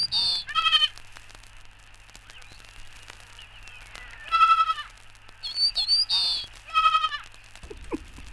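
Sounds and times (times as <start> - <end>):
young goat kid bleating: 0.1 - 1.0, 4.1 - 4.9, 6.2 - 8.0.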